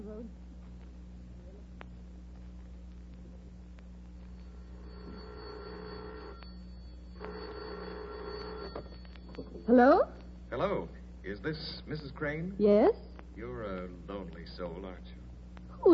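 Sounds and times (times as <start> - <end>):
low hum: 0.0 - 15.9
speech: 0.1 - 0.4, 9.6 - 15.2
old telephone bell ringing: 4.4 - 10.0.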